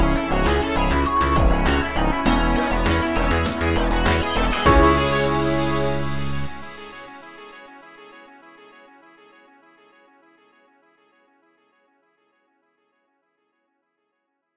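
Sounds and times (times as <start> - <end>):
game over jingle: 0.1 - 7.1.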